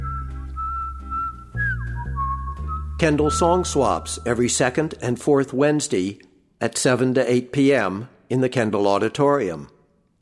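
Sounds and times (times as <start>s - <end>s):
man whistling a clear high melodic tune: 0.0s - 4.6s
speech: 3.0s - 9.7s.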